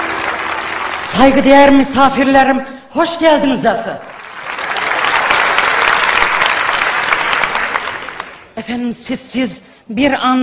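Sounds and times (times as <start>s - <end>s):
audience applause: 0.0s - 1.5s, 4.1s - 8.6s
speech: 1.1s - 4.1s, 8.6s - 10.4s.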